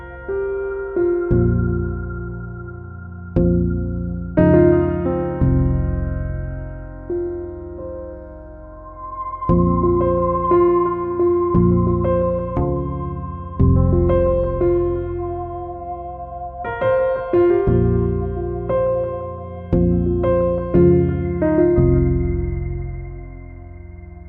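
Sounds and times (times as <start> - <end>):
neutral motion piano music without drums: 0.0 - 24.2.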